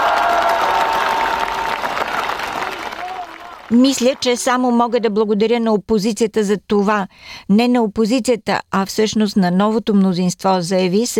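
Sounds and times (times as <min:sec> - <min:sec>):
cheering in parliament: 0:00.0 - 0:05.0
applause in parliament: 0:00.0 - 0:05.1
speech: 0:03.7 - 0:11.1.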